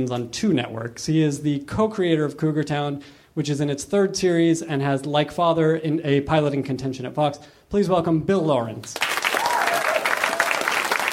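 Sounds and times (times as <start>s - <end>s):
speech: 0.0s - 9.1s
audience applause: 9.0s - 11.1s.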